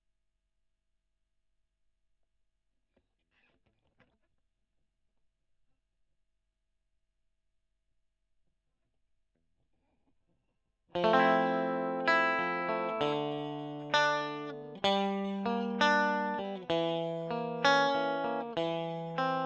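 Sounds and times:
electric guitar recorded with a Gefell microphone: 10.9 - 19.4.

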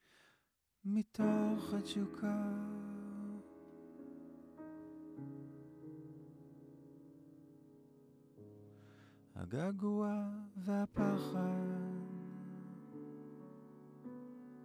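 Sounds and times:
vocals: 0.8 - 3.8, 9.3 - 13.4.

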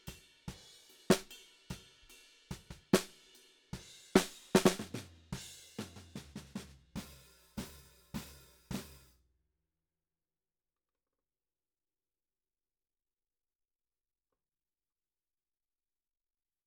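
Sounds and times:
snare drum: 0.0 - 9.1.

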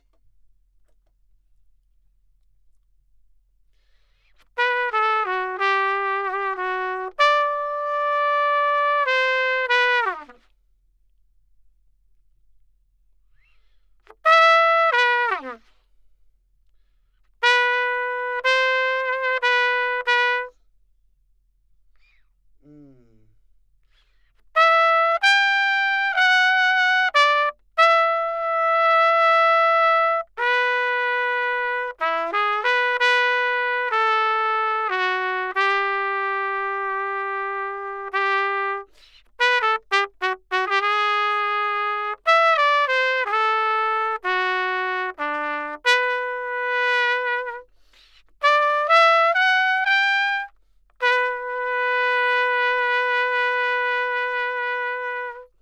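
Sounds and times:
trumpet: 4.1 - 10.5, 14.0 - 15.8, 17.3 - 20.6, 24.3 - 55.5.

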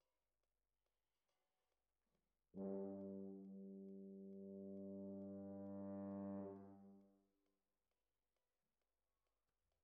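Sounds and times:
trombones: 2.6 - 7.2.

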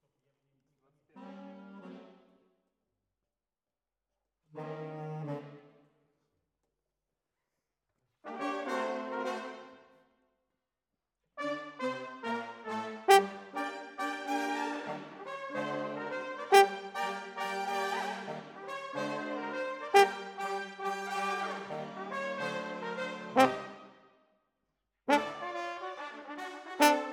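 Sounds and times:
horns: 8.3 - 9.7, 11.4 - 23.9, 25.1 - 27.1.

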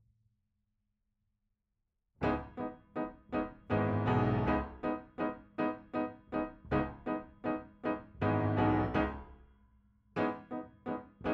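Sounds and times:
piano note B: 2.2 - 9.3.

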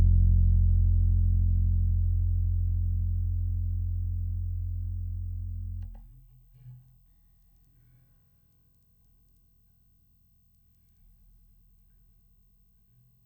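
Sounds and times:
electric bass recorded direct: 0.0 - 6.2.

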